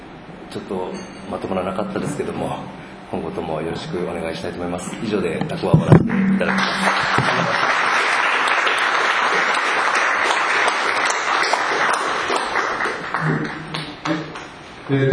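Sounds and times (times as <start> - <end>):
speech: 0.5 - 7.8, 14.9 - 15.1
audience applause: 6.4 - 14.5.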